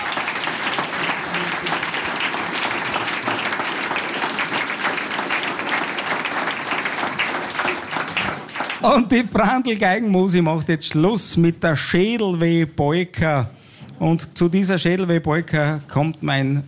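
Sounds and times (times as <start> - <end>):
audience applause: 0.0 - 9.0
speech: 8.8 - 16.6.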